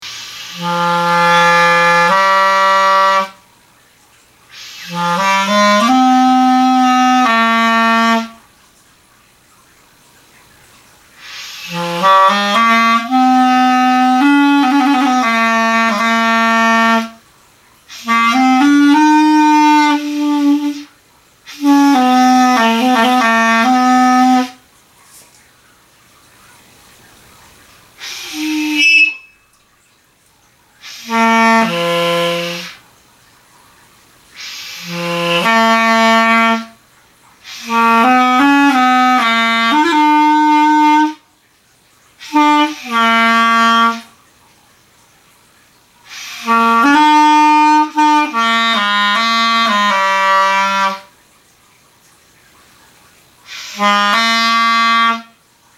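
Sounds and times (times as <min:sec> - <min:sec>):
clarinet: 0:00.0 - 0:03.5, 0:04.5 - 0:08.5, 0:11.1 - 0:17.3, 0:17.9 - 0:24.6, 0:28.0 - 0:29.6, 0:30.8 - 0:32.8, 0:34.3 - 0:36.8, 0:37.4 - 0:41.3, 0:42.2 - 0:44.2, 0:46.0 - 0:51.2, 0:53.4 - 0:55.4.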